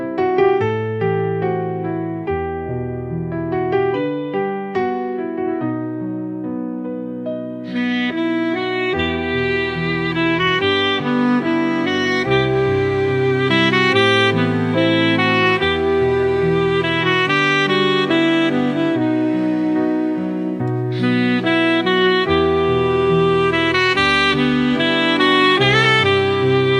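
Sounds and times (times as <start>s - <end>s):
smooth saxophone music: 0.2s - 26.7s.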